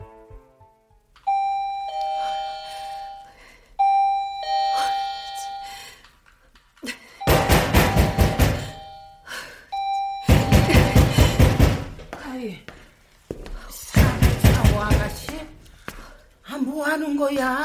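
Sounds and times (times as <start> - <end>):
two-tone doorbell chime: 1.2 - 6.0, 7.2 - 11.4
heavy knocking on an apartment door: 7.3 - 8.8, 10.3 - 12.0, 13.9 - 15.5
people talking: 13.8 - 15.6, 16.5 - 17.6.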